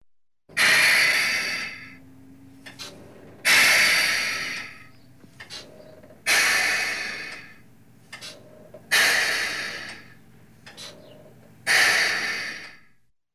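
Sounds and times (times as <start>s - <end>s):
diesel truck hydraulic brakes bleeding: 0.5s - 13.0s.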